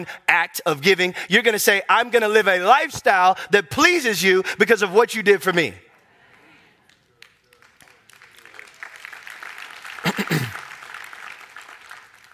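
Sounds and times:
speech: 0.0 - 5.8
audience applause spreading across room: 6.9 - 12.3.

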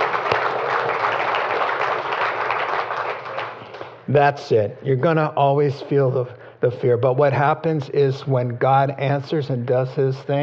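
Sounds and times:
audience applause: 0.0 - 4.0
speech: 4.1 - 10.4.

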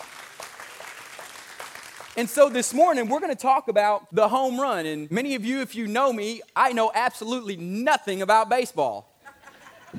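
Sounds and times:
audience hand clap: 0.0 - 3.2
speech: 2.2 - 9.1
laughter: 9.2 - 9.9.

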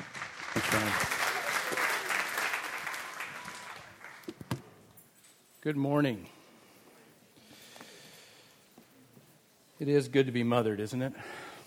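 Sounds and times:
audience applause welcoming a speaker at a church service: 0.0 - 4.4
speech: 0.7 - 1.1, 5.6 - 6.4, 9.8 - 11.5.

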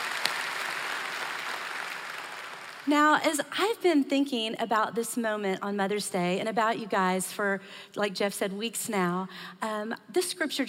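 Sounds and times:
audience applause at a Mother's Day church service on the Keller campus: 0.0 - 2.9
speech: 2.8 - 10.6.

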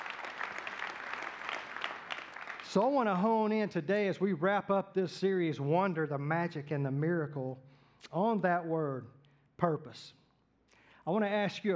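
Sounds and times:
church congregation clapping during a Christmas sermon: 0.0 - 3.3
speech: 2.7 - 10.2, 11.1 - 11.7.

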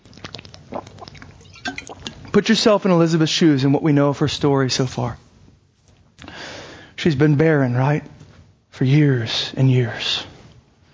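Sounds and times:
drinking water: 0.0 - 2.3
speech: 1.8 - 5.3, 7.0 - 8.2, 8.8 - 10.3.

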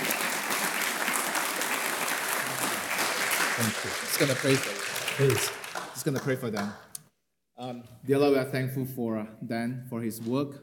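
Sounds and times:
church gathering audience applauding to welcome a speaker: 0.0 - 6.8
speech: 3.6 - 6.8, 7.6 - 10.6.

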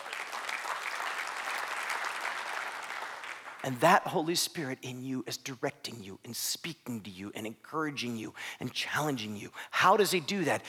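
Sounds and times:
audience applause: 0.0 - 3.6
speech: 3.6 - 10.6.

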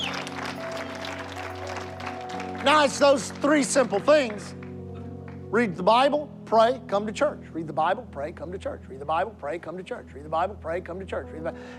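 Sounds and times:
audience clapping: 0.0 - 5.5
speech: 2.6 - 4.6, 5.5 - 11.7.

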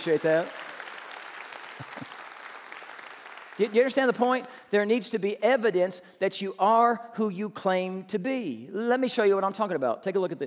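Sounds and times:
speech: 0.0 - 0.6, 3.6 - 10.4
round of applause: 0.0 - 4.6.

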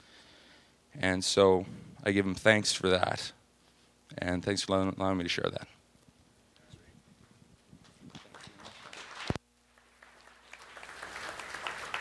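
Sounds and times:
speech: 1.0 - 3.4, 4.1 - 5.8
audience applause: 8.1 - 11.9.

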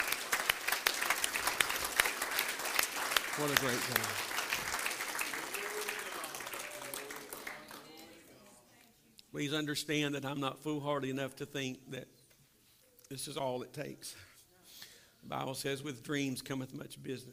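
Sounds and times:
audience clapping hands: 0.0 - 8.2
speech: 3.4 - 4.3, 9.4 - 12.2, 13.1 - 14.3, 15.2 - 17.3.

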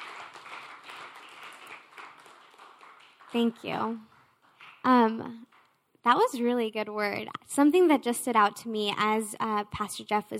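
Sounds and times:
audience applause: 0.0 - 4.8
speech: 3.3 - 4.1, 4.8 - 10.3.

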